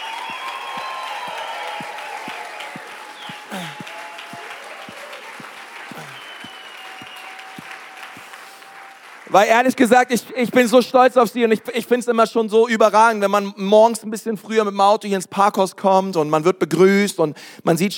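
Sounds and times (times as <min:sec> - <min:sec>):
audience applauding: 0:00.0 - 0:10.2
speech: 0:03.5 - 0:03.8, 0:09.3 - 0:17.9.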